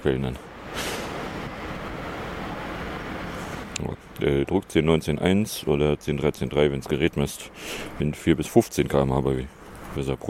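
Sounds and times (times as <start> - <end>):
speech: 0.0 - 0.8, 3.8 - 10.2
train passing by: 0.0 - 3.8.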